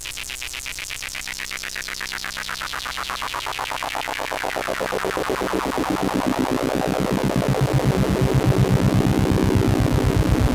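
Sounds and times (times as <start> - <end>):
synthesizer tone through state variable VCF with ADSR and LFO: 3.7 - 10.5.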